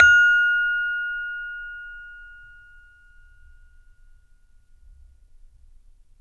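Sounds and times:
saron note F3: 0:00.0 - 0:03.9.

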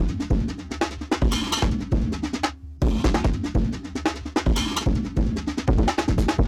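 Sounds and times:
drum loop at 148 bpm: 0:00.0 - 0:06.4.

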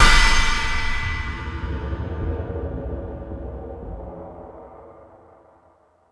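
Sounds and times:
metal drums on E-MU Pro-Cussion: 0:00.0 - 0:02.9.

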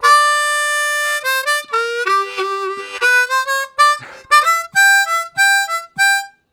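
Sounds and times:
urgent harmonica music: 0:00.0 - 0:06.5.

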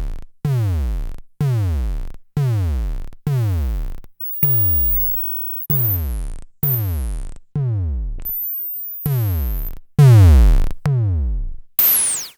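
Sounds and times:
Klone Dual Percussion Synthesiser: 0:00.5 - 0:12.3.

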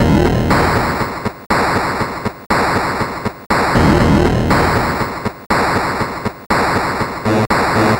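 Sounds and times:
Atari 2600 noise drums: 0:00.0 - 0:07.9.

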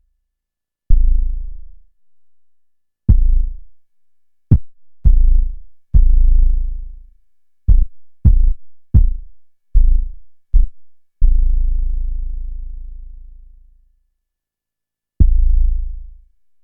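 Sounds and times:
kick drum: 0:00.9 - 0:01.2, 0:03.1 - 0:03.8, 0:04.5 - 0:06.9, 0:07.7 - 0:11.4, 0:15.2 - 0:15.6.

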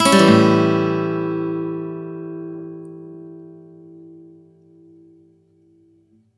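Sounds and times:
acoustic guitar upstroke in A: 0:00.0 - 0:06.0.

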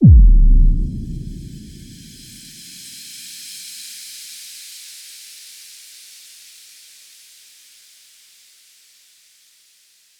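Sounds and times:
boom: 0:00.0 - 0:02.3.

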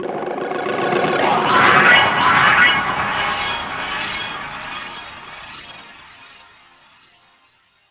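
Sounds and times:
turbulence: 0:00.0 - 0:06.2.

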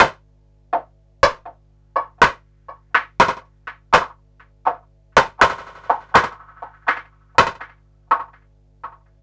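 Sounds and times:
drum loop: 0:01.2 - 0:09.0
snare drum: 0:02.0 - 0:04.1, 0:04.7 - 0:08.4.

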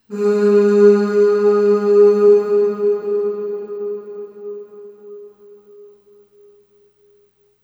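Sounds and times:
voice singing short ooh on G sharp two with long reverb: 0:00.0 - 0:05.6.

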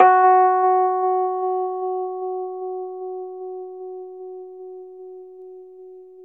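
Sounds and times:
Rhodes 73 electric piano F# note: 0:00.0 - 0:03.0.

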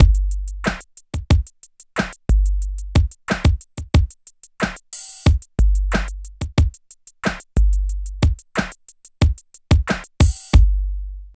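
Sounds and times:
music loop: 0:00.0 - 0:10.8.

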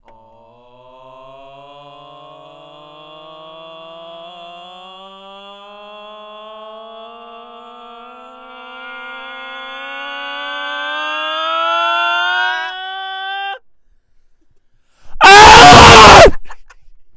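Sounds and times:
person vocalizing ooh: 0:15.2 - 0:16.4.

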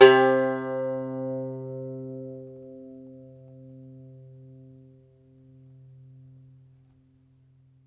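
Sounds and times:
Irish bouzouki plucked strings: 0:00.0 - 0:04.9.

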